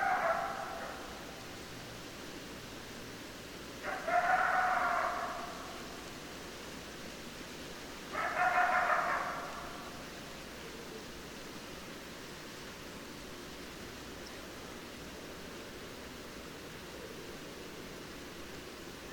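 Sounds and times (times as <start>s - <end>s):
coyote howling: 0.0s - 1.1s, 3.8s - 5.8s, 8.1s - 10.0s
background hiss: 0.0s - 19.1s.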